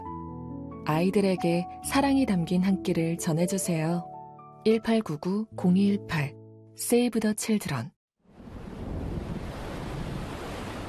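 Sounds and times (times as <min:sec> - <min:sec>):
speech: 0:00.8 - 0:08.0
buffeting wind: 0:08.3 - 0:10.8
rough North Atlantic waves crashing: 0:08.3 - 0:10.8.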